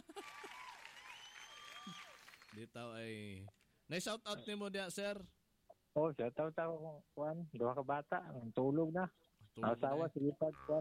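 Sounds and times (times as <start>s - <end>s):
audience applause during a quiz segment at an event: 0.0s - 2.6s
speech: 2.5s - 5.4s, 6.0s - 10.7s.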